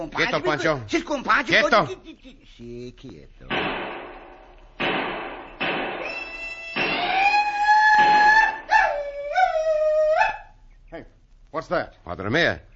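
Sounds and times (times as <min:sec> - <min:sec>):
speech: 0:00.0 - 0:03.8, 0:11.0 - 0:12.7
Sioux war whoop: 0:06.8 - 0:10.4.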